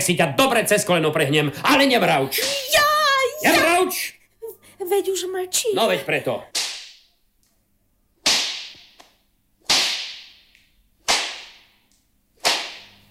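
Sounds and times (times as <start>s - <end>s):
speech: 0.0s - 2.8s, 3.4s - 4.2s, 4.9s - 6.6s
whip lashing: 6.6s - 7.1s, 8.2s - 9.1s, 9.7s - 11.8s, 12.4s - 13.0s.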